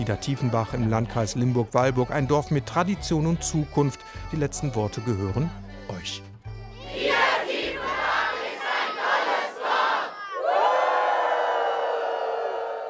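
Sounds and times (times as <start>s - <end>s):
speech: 0.0s - 6.3s
crowd cheering: 6.8s - 12.8s.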